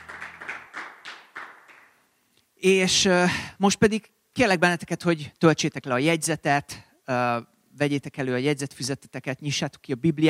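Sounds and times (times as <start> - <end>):
church congregation clapping for its volunteers: 0.0 - 2.0
speech: 2.6 - 10.2.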